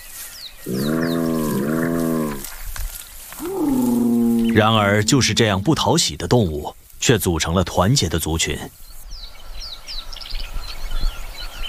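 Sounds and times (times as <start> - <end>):
speech: 0.6 - 1.2, 4.6 - 8.9
spotted hyena calls: 0.7 - 2.5, 3.4 - 5.8.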